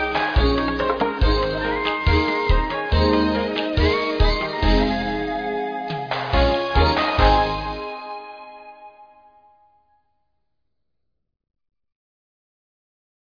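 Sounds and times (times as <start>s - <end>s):
upbeat music: 0.0s - 9.2s.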